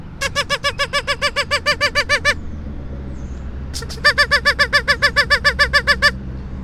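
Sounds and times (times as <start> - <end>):
duck call quacking: 0.2 - 2.4, 3.8 - 6.2.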